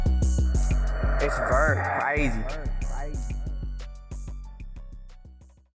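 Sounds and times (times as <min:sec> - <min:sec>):
Detroit type beat in F minor: 0:00.1 - 0:03.8.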